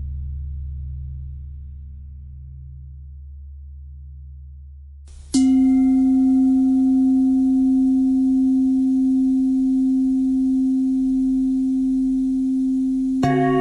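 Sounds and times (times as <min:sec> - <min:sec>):
pentatonic bell melody: 0:05.3 - 0:13.5.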